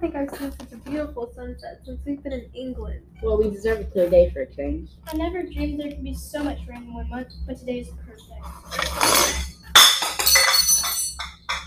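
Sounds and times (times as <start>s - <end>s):
speech: 0.0s - 9.1s
dishes knocked off a tea tray: 8.7s - 11.6s.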